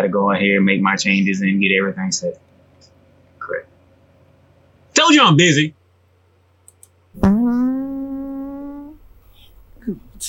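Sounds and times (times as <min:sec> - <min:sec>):
speech: 0:00.0 - 0:02.5, 0:03.5 - 0:03.7, 0:05.0 - 0:05.8, 0:07.2 - 0:07.4, 0:09.9 - 0:10.2
fart: 0:07.2 - 0:09.2.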